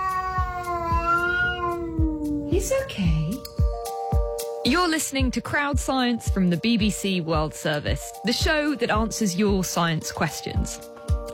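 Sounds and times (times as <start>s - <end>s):
cat yowling: 0.0s - 2.5s
speech: 2.6s - 3.4s, 4.6s - 11.3s.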